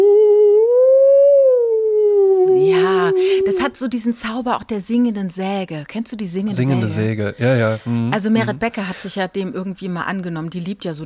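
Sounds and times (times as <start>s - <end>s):
voice imitating a theremin tone: 0.0s - 3.8s
speech: 3.6s - 11.0s.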